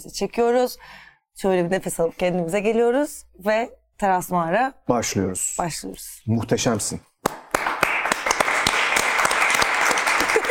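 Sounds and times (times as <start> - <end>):
speech: 0.0 - 7.4
applause from a small group: 7.2 - 10.4
sharp individual claps: 7.2 - 10.4.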